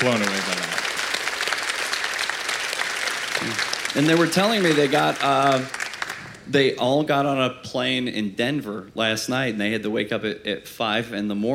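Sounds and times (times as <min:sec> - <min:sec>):
speech: 0:00.0 - 0:00.4, 0:03.9 - 0:05.8, 0:06.5 - 0:11.5
audience applause: 0:00.0 - 0:06.5.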